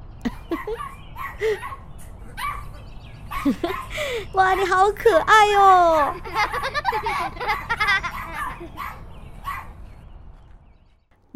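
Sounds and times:
laughter: 0:00.3 - 0:00.8, 0:01.4 - 0:09.0
speech: 0:00.5 - 0:01.8, 0:03.4 - 0:07.7
injured puppy barking and yipping: 0:00.5 - 0:04.0, 0:07.4 - 0:09.8.

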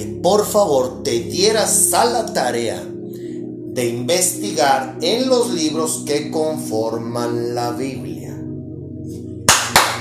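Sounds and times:
speech: 0:00.0 - 0:02.9, 0:03.8 - 0:08.2
applause: 0:09.5 - 0:09.9.

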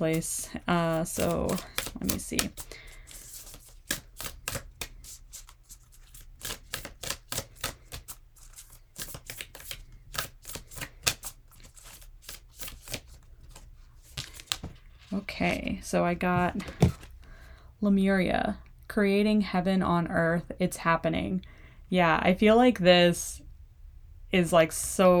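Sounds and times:
speech: 0:00.0 - 0:02.8, 0:15.4 - 0:17.0, 0:17.8 - 0:23.3, 0:24.3 - 0:25.1
Rebecca Campbell Work Your Light oracle card deck being shuffled: 0:00.1 - 0:15.7, 0:16.3 - 0:17.2.

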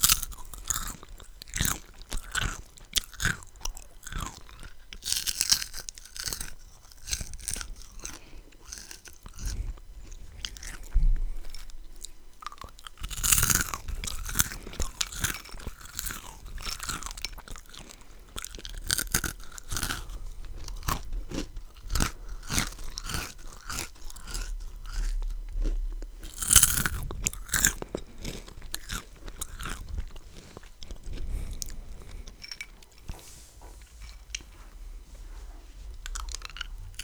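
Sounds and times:
person eating a crunchy sweet or salty snack: 0:00.0 - 0:33.2, 0:36.0 - 0:37.0.

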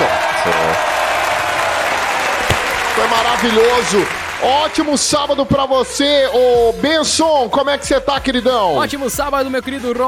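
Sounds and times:
crowd applause: 0:00.0 - 0:05.0
speech: 0:03.0 - 0:10.0.

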